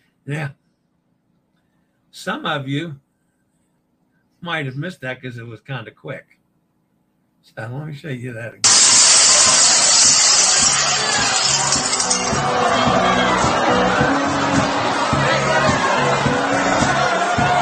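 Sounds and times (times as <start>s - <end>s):
speech: 0.2s - 0.6s, 2.2s - 3.0s, 4.4s - 6.4s, 7.4s - 8.8s, 12.2s - 17.5s
glass breaking on a cruise ship: 8.6s - 12.4s.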